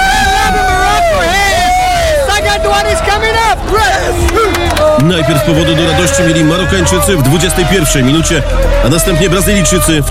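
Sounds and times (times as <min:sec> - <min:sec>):
stadium crowd of football fans cheering after a goal: 0:00.0 - 0:10.0
speech: 0:05.0 - 0:10.0.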